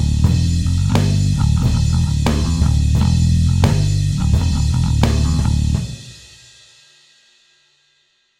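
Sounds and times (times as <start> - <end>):
single-string solo backing track: 0.0 - 6.4.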